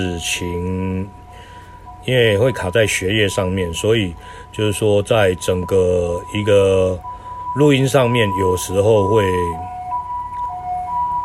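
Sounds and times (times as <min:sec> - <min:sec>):
speech: 0:00.0 - 0:01.2, 0:02.0 - 0:09.7
ambulance siren two-tone wail: 0:00.0 - 0:11.2
faint traffic rumble: 0:00.0 - 0:11.2.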